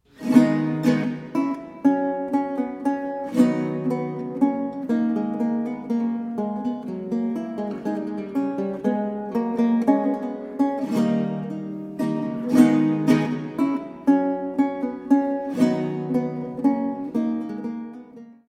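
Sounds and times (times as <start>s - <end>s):
minuet: 0.0s - 18.4s.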